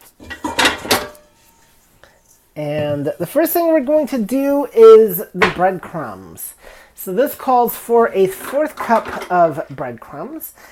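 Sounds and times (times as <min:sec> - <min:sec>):
mixing bowl clattering as it is taken out in a kitchen: 0:00.0 - 0:01.3, 0:08.2 - 0:09.7
dishware knocks and scrapes: 0:00.2 - 0:01.4, 0:08.3 - 0:09.4
speech: 0:02.6 - 0:10.7.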